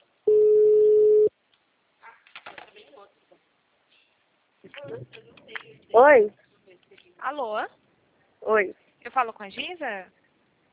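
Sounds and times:
telephone ringback tone: 0.3 - 1.3
speech: 4.8 - 5.3, 5.9 - 6.4, 7.2 - 7.8, 8.4 - 10.2.

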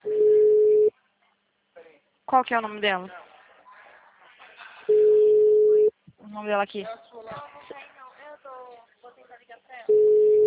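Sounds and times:
speech: 2.3 - 3.2, 6.4 - 7.6
telephone ringing tone: 4.9 - 5.9, 9.9 - 10.4.

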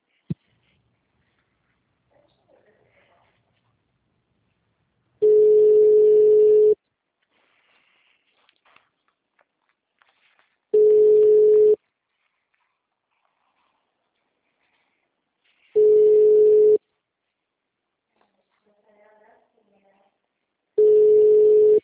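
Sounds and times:
telephone line tone while waiting for an answer: 5.2 - 6.8, 10.8 - 11.8, 15.8 - 16.8, 20.8 - 21.8.

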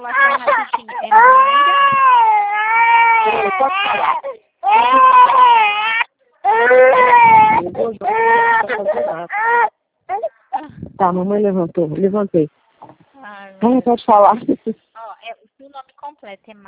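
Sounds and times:
infant crying hard in loud wavering wails: 0.0 - 10.7
speech: 3.6 - 5.2, 11.0 - 12.6, 13.6 - 14.8.

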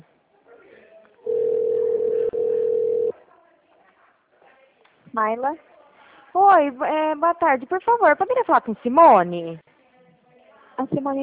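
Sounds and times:
faint noise: 0.0 - 11.2
telephone tone while a call is transferred: 1.3 - 3.1
speech: 5.2 - 5.7, 6.3 - 9.7, 10.8 - 11.2.

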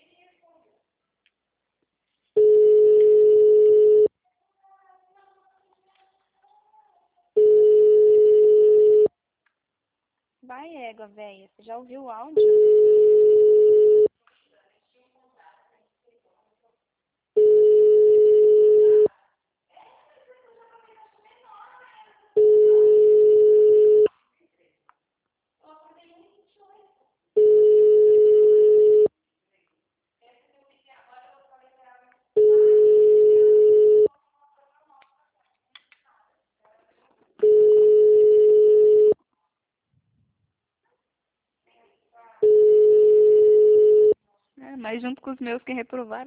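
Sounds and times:
unanswered telephone call tone: 2.4 - 4.1, 7.4 - 9.1, 12.4 - 14.1, 17.4 - 19.1, 22.4 - 24.1, 27.4 - 29.1, 32.4 - 34.1, 37.4 - 39.2, 42.4 - 44.2
speech: 10.6 - 13.0, 45.0 - 46.2.

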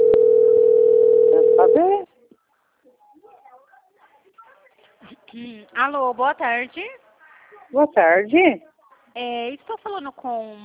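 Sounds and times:
telephone dial tone: 0.0 - 1.8
speech: 5.4 - 7.0, 7.7 - 10.6.

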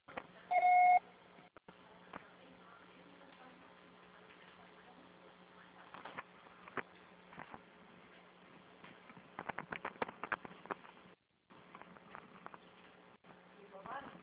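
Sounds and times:
low constant hum on a muffled phone line: 0.5 - 1.0
voicemail beep tone: 0.5 - 1.0
faint clicks and rustles: 3.2 - 14.2.

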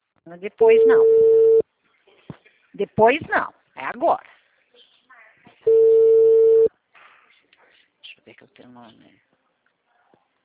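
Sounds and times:
speech: 0.2 - 1.3, 2.8 - 4.3, 8.3 - 9.4
telephone tone beep during an unanswered call: 0.7 - 1.6, 5.7 - 6.7.

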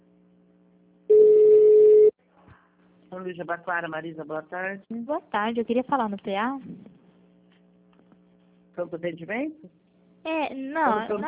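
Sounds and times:
telephone line beep during call transfer in a Brazilian phone system: 1.1 - 2.1
speech: 3.2 - 6.9, 8.8 - 11.2.

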